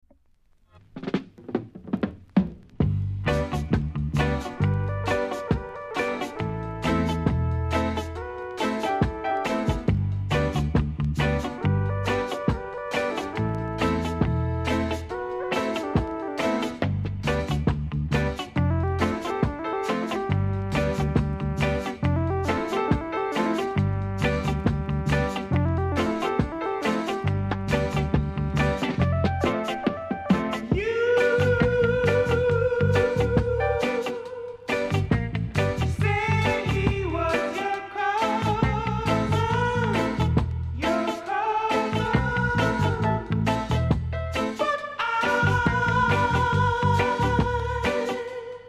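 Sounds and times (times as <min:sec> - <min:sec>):
reggae disco rockers music: 0:00.8 - 0:48.6.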